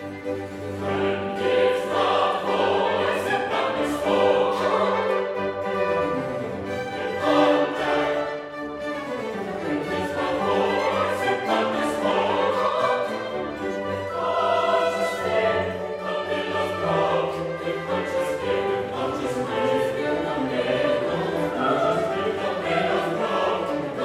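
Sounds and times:
chorus singing: 0.5s - 24.0s.

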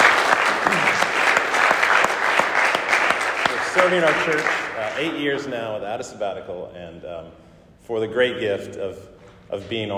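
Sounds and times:
church meeting congregation applause: 0.0s - 5.5s
speech: 3.9s - 9.9s.

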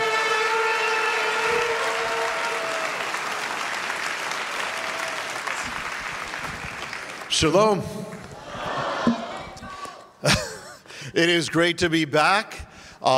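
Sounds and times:
church congregation at Maranatha in San Diego applauding a speaker: 0.0s - 9.7s
speech: 7.4s - 8.1s, 11.2s - 13.1s.

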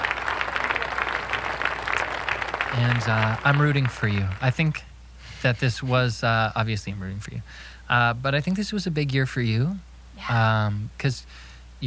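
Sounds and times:
applause sound effect sample: 0.0s - 4.7s
speech: 2.8s - 11.8s.

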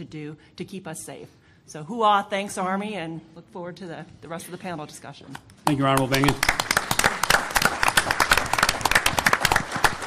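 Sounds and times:
speech: 0.0s - 6.7s
room full of government officials clapping: 5.6s - 10.0s.

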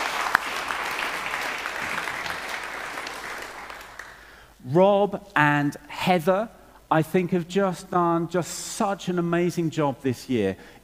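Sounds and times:
audience applause: 0.0s - 4.3s
speech: 4.7s - 10.8s.

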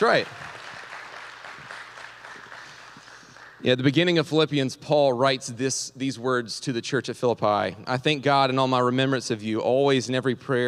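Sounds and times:
speech: 0.0s - 0.4s, 3.6s - 10.6s
audience applause: 0.0s - 3.7s.

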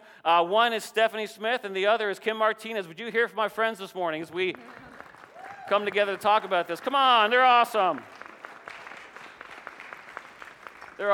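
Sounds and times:
speech: 0.2s - 4.8s, 5.7s - 8.1s, 11.0s - 11.1s
audience clapping: 4.4s - 11.1s.

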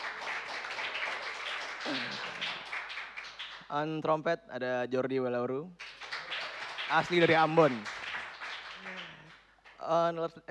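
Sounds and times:
audience applause: 0.0s - 3.6s, 5.8s - 9.4s
speech: 3.7s - 5.8s, 6.9s - 8.0s, 9.8s - 10.4s.

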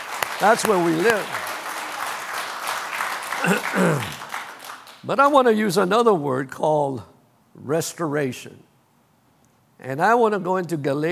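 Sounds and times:
audience clapping: 0.0s - 5.6s
speech: 0.4s - 1.5s, 3.4s - 4.2s, 5.0s - 8.7s, 9.8s - 11.1s.

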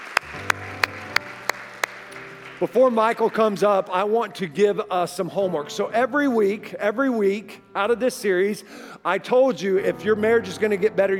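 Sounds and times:
rhythmic unison clapping: 0.0s - 4.2s
speech: 2.6s - 11.1s.

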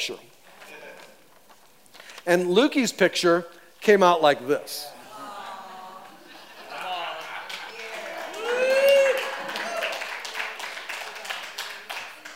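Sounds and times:
speech: 0.0s - 0.3s, 2.3s - 4.9s
laughter: 4.9s - 9.9s
audience applause: 6.4s - 12.3s
audience whoops and shouts: 6.6s - 11.3s.

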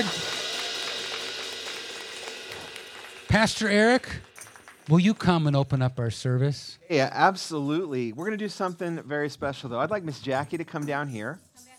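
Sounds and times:
audience applause: 0.0s - 5.6s
speech: 3.3s - 4.3s, 4.9s - 11.5s.

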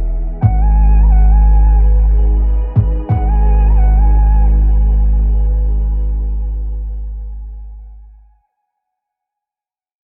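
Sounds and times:
inspirational beats: 0.0s - 7.9s.

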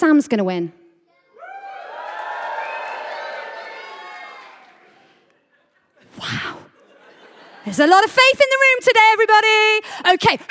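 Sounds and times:
speech: 0.0s - 0.8s, 7.6s - 10.5s
audience cheering: 1.3s - 5.3s
laughter: 4.8s - 7.9s.

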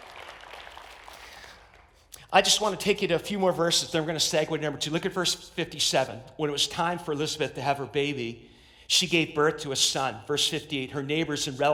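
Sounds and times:
crowd clapping: 0.0s - 2.2s
speech: 2.3s - 11.7s.

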